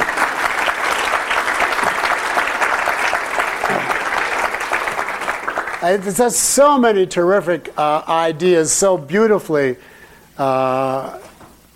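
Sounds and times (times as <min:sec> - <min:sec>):
audience clapping: 0:00.0 - 0:06.4
speech: 0:05.8 - 0:11.2.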